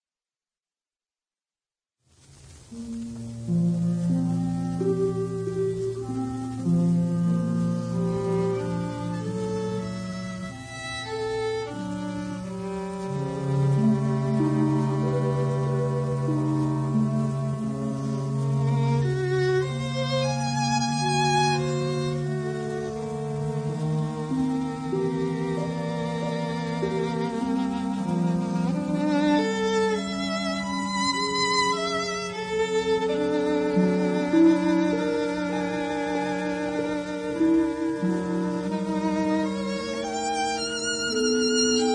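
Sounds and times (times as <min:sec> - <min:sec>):
violin concerto: 0:02.6 - 0:41.9.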